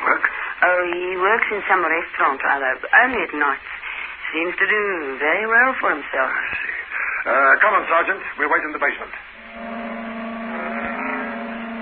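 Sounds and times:
speech: 0:00.8 - 0:09.2
red sports car engine turning into a basement garage: 0:09.4 - 0:11.8.

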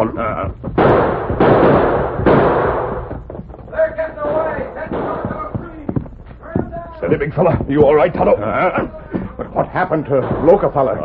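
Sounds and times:
gunshots during a shootout: 0:00.7 - 0:06.0, 0:10.1 - 0:11.0
voices shouting: 0:03.7 - 0:09.4
speech: 0:07.1 - 0:08.9, 0:09.8 - 0:11.0.

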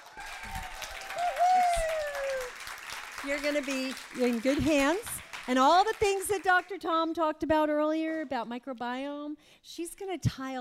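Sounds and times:
audience applause: 0:00.0 - 0:06.7
speech: 0:03.2 - 0:10.5.

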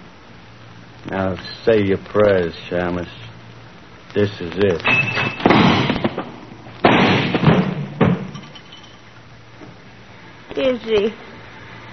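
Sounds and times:
speech: 0:01.0 - 0:03.2, 0:04.2 - 0:05.7, 0:10.6 - 0:11.3
loud gunshots: 0:05.4 - 0:08.3.

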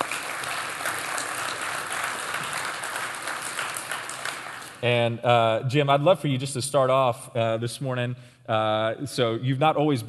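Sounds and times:
audience applause welcoming a guest speaker at a morning prayer gathering: 0:00.0 - 0:04.8
speech: 0:04.8 - 0:10.0.

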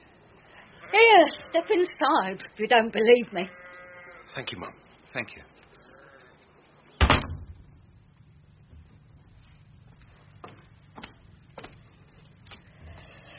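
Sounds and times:
speech: 0:00.9 - 0:03.6, 0:04.4 - 0:05.5
door being thrown open: 0:07.0 - 0:07.7.

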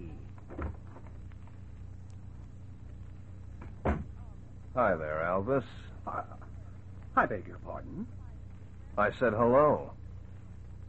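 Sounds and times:
low steady rumble: 0:00.0 - 0:10.8
wooden door opening thump: 0:03.6 - 0:04.2
speech: 0:04.8 - 0:06.4, 0:07.2 - 0:08.2, 0:09.0 - 0:10.0.

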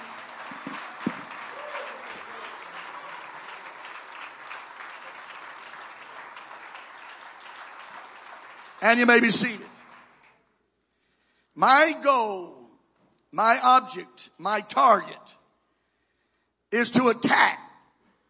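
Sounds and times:
crowd clapping: 0:00.0 - 0:10.6
speech: 0:08.8 - 0:09.7, 0:11.6 - 0:12.6, 0:13.4 - 0:15.4, 0:16.7 - 0:17.6.

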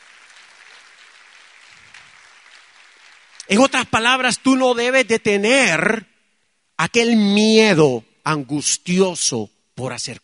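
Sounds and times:
audience applause: 0:00.0 - 0:03.8
speech: 0:03.5 - 0:06.1, 0:06.8 - 0:10.2.

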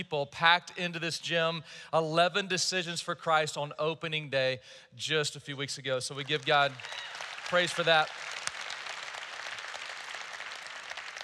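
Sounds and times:
speech: 0:00.0 - 0:08.4
audience applause: 0:06.2 - 0:11.2.

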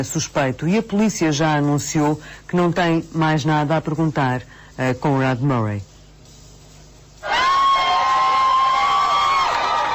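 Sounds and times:
speech: 0:00.0 - 0:05.9
high-pitched shouts or whistles: 0:07.2 - 0:09.9
crowd applauding arriving family: 0:07.4 - 0:09.9.

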